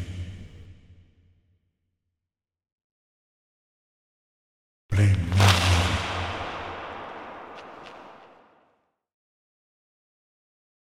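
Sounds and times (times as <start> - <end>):
whoosh: 5.0 - 8.6.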